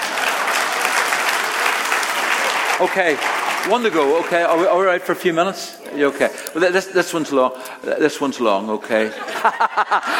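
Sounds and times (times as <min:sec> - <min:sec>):
audience applause: 0:00.0 - 0:06.7
speech: 0:02.8 - 0:10.1
laughter: 0:08.8 - 0:10.1.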